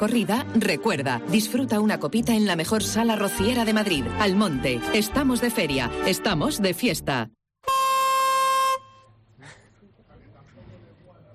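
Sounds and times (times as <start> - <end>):
speech: 0.0 - 7.8
chifla signal horn blast: 7.6 - 9.2.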